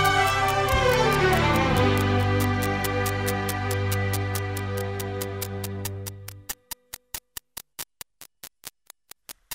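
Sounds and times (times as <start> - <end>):
sad song: 0.0 - 6.3.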